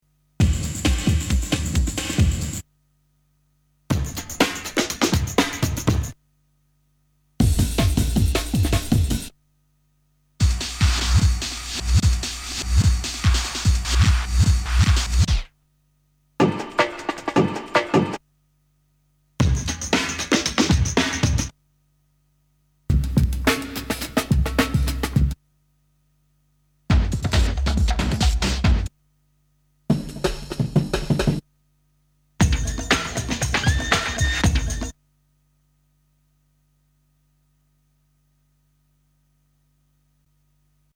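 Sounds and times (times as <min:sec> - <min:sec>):
breakbeat drums: 0:00.4 - 0:02.6, 0:03.9 - 0:06.2, 0:07.4 - 0:09.4, 0:10.4 - 0:15.6, 0:16.4 - 0:18.2, 0:19.4 - 0:21.6, 0:22.9 - 0:25.4, 0:26.9 - 0:29.0, 0:29.9 - 0:31.5, 0:32.4 - 0:35.0.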